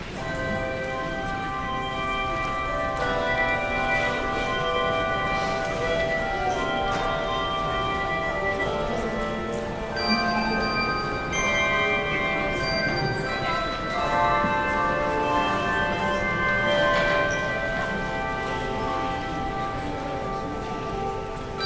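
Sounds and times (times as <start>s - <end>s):
handbells: 0.0s - 21.6s.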